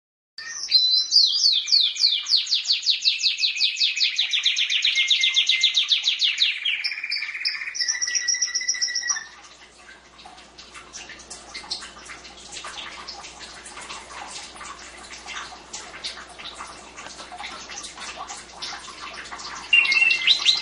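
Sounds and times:
canary singing trills: 0.4s - 9.4s, 19.7s - 20.6s.

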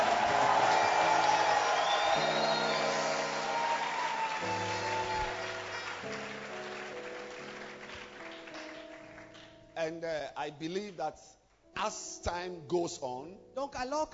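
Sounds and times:
audience applause and cheering: 0.0s - 9.4s
speech: 9.9s - 14.1s.

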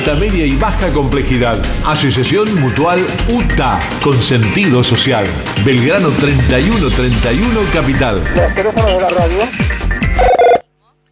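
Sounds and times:
speech: 0.0s - 10.4s
telephone bell ringing: 10.2s - 10.6s.

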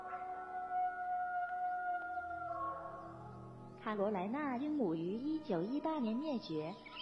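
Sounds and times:
Falkland Islands wolf howling: 0.0s - 3.4s
speech: 3.8s - 6.9s.

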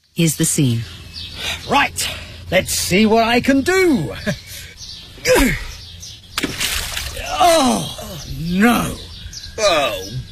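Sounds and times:
speech: 0.2s - 1.0s, 1.7s - 4.4s, 5.2s - 5.7s, 7.4s - 7.9s, 8.5s - 9.0s, 9.6s - 10.2s
golf ball splashing into water: 6.4s - 7.2s.

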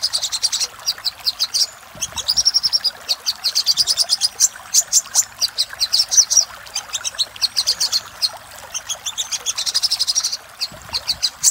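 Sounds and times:
little spiderhunter singing: 0.0s - 11.5s.

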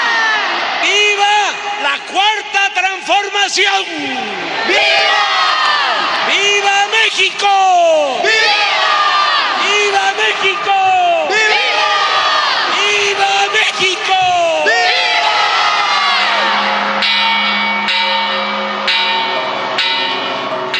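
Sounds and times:
roaring crowd cheering and shouting: 0.0s - 20.7s
speech: 3.0s - 5.4s, 6.4s - 8.5s
bells being rung: 16.1s - 20.7s.

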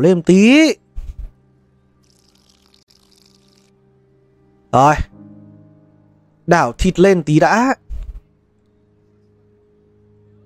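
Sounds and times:
speech: 0.0s - 0.8s, 4.7s - 5.1s, 6.5s - 7.8s
cooking oil poured into a pan: 2.1s - 3.7s.

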